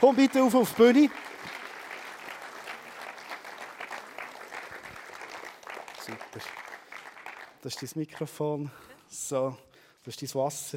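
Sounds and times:
speech: 0:00.0 - 0:01.4, 0:06.4 - 0:06.6, 0:07.6 - 0:10.7
audience applause: 0:00.0 - 0:08.2.

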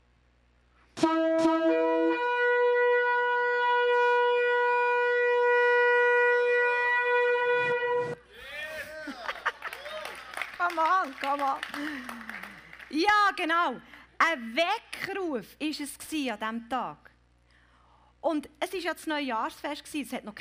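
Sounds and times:
ram's horn being blown: 0:01.0 - 0:08.2
laughter: 0:08.3 - 0:12.9
speech: 0:11.0 - 0:12.3, 0:12.9 - 0:17.1, 0:18.2 - 0:20.3.

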